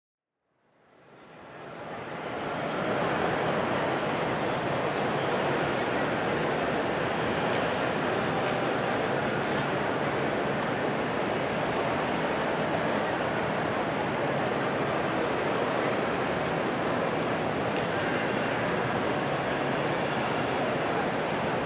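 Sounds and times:
Grand Central station NYC ambience: 0:00.6 - 0:21.6.

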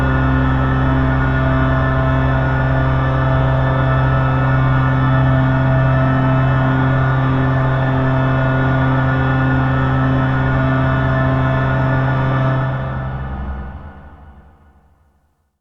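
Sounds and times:
simple drone: 0:00.0 - 0:14.9.

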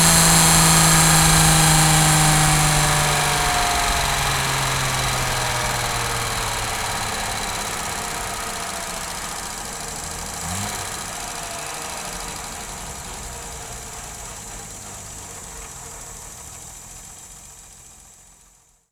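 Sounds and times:
Jaguar E-Type car driving with steady engine: 0:00.0 - 0:18.7.

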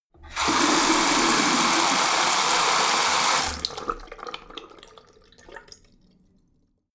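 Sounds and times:
bathroom tap water flowing very hard: 0:00.2 - 0:05.7.

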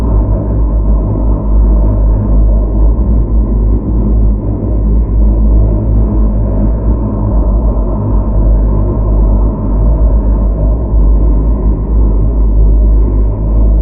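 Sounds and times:
low stealth drone: 0:00.0 - 0:13.8.

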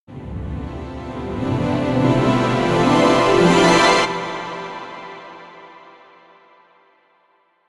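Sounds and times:
alienated harp rising: 0:00.2 - 0:05.0.

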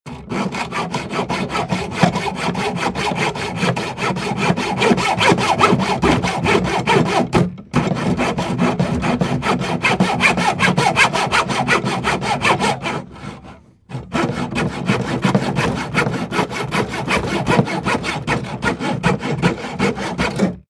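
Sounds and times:
sawing wood: 0:00.0 - 0:20.6.

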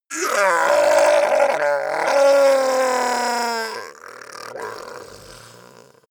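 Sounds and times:
goblin groaning in pain overdramatically: 0:00.1 - 0:06.0.

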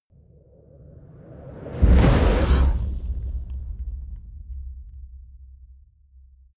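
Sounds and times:
fire torch whoosh hit: 0:01.7 - 0:06.3.

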